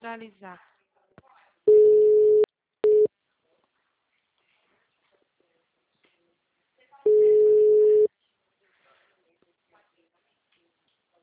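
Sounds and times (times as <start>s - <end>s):
telephone busy tone after a dropped call: 1.7s - 3.1s, 7.1s - 8.1s.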